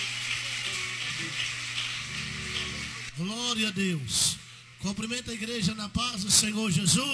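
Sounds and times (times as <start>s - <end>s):
audience clapping hands: 0.0s - 3.1s
speech: 3.2s - 7.1s.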